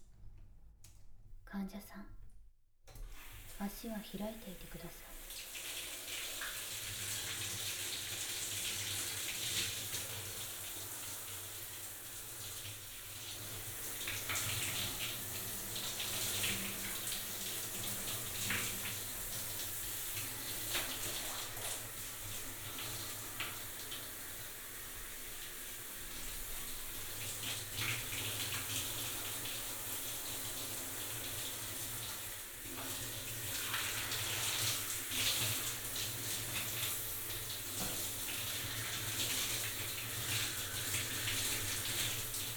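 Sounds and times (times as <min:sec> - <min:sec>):
speech: 0:01.5 - 0:02.2, 0:03.6 - 0:05.5
water running to rinse a patient during bathing care: 0:02.9 - 0:42.5.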